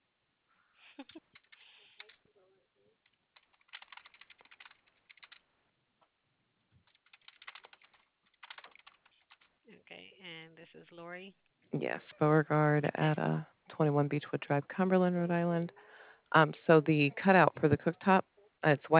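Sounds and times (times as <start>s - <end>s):
speech: 1.0s - 1.5s, 10.0s - 18.9s
typing on a computer keyboard: 1.0s - 2.2s, 3.1s - 5.4s, 6.8s - 9.5s.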